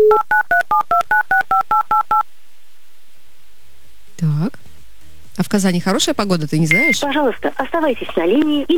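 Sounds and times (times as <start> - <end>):
telephone number being dialed: 0.1 - 2.2
speech: 5.4 - 8.7.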